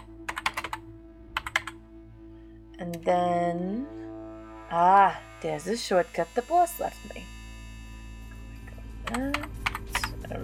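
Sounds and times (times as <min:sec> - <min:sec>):
typing a password on a computer keyboard: 0:00.0 - 0:00.8, 0:01.4 - 0:01.8
faint steady hum: 0:00.0 - 0:10.4
speech: 0:02.8 - 0:04.0, 0:04.7 - 0:07.4, 0:09.1 - 0:09.5.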